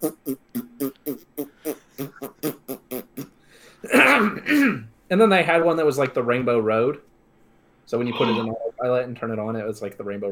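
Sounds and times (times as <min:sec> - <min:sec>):
voice imitating a farting sound: 0:00.0 - 0:03.4
speech: 0:05.1 - 0:07.1, 0:07.9 - 0:10.2.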